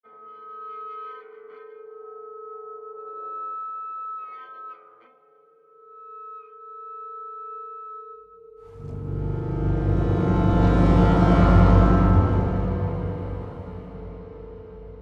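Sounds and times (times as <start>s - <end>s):
tense mood music: 8.8s - 15.0s.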